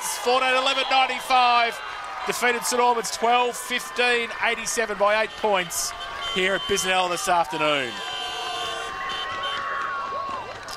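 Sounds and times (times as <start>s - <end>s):
crowd cheering: 0.0s - 10.7s
speech: 0.2s - 8.1s
end-of-game siren at a football ground: 3.7s - 10.5s.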